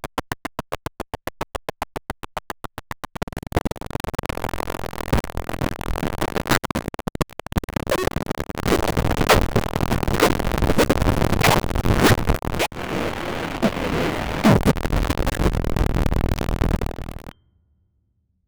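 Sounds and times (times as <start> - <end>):
digital hum: 3.4 - 17.3
crisp 8 bit pop clean zaps: 7.9 - 17.3.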